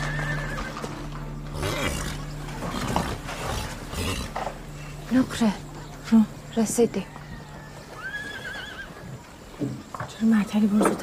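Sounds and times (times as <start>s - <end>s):
carriage horse neighing as the carriage stops: 0.0s - 5.0s, 7.2s - 9.5s
speech: 5.1s - 7.2s, 10.2s - 11.0s.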